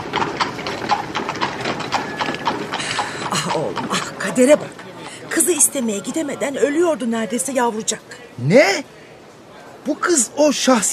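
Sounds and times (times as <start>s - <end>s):
horse-drawn carriage hooves clip-clopping: 0.0s - 6.3s
carriage wheels rumbling: 0.0s - 8.0s
speech: 4.4s - 9.0s, 9.8s - 10.9s.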